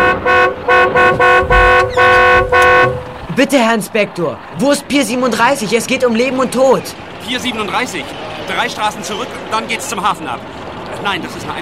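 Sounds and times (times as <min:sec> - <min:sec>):
car horn honking: 0:00.0 - 0:03.3
speech: 0:03.4 - 0:11.6.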